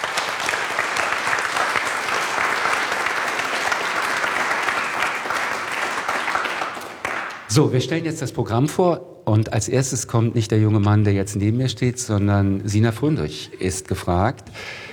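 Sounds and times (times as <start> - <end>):
audience applause: 0.0 - 7.5
speech: 7.6 - 14.8.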